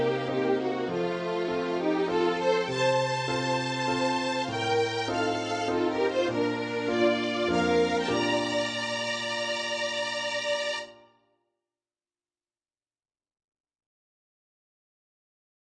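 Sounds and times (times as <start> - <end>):
waltz music: 0.0 - 11.0.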